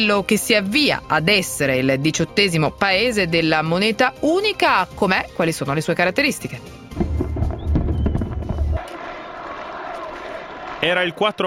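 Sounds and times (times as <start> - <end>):
speech: 0.0 - 6.8, 10.8 - 11.4
fireworks at a street celebration in Latvia crackling and popping: 6.9 - 8.8.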